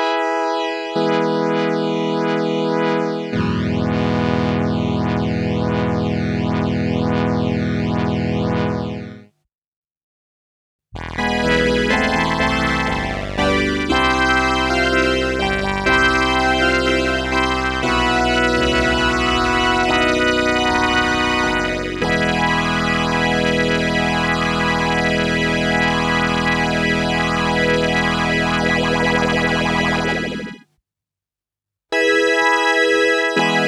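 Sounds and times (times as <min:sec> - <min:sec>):
analog synthesizer: 0:00.0 - 0:09.3, 0:11.0 - 0:30.6, 0:32.0 - 0:33.6.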